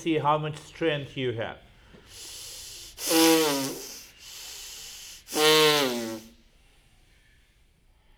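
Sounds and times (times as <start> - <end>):
speech: 0.0 - 2.4, 3.0 - 3.9
hissing breath through both nostrils: 2.0 - 6.4.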